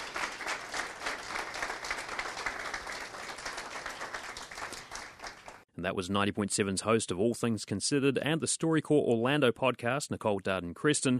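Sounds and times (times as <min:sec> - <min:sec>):
audience applause: 0:00.0 - 0:05.6
speech: 0:05.8 - 0:11.1.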